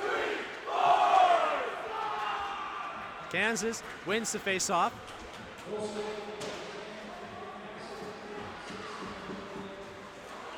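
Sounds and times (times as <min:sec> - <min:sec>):
college student section cheering at a hockey game: 0:00.0 - 0:04.9
speech: 0:03.3 - 0:06.6.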